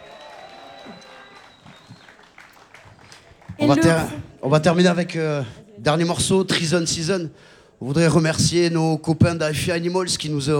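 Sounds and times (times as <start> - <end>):
audience applause: 0.0 - 4.2
speech: 0.9 - 1.2, 3.6 - 10.5.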